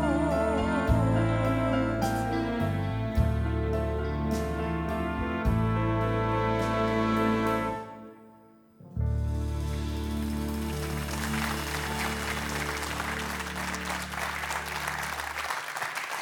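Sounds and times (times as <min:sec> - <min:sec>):
sustained low musical chord: 0:00.0 - 0:15.3
audience applause after an orchestra concert: 0:09.6 - 0:16.1.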